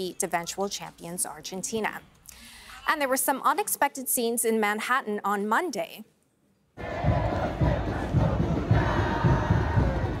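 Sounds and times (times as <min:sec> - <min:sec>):
speech: 0:00.0 - 0:06.1
football fans cheering in a square: 0:06.8 - 0:10.1.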